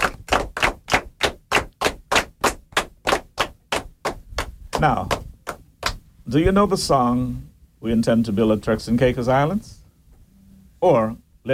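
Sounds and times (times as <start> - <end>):
children clapping: 0.0 - 6.0
speech: 4.8 - 5.2, 6.3 - 9.8, 10.8 - 11.5.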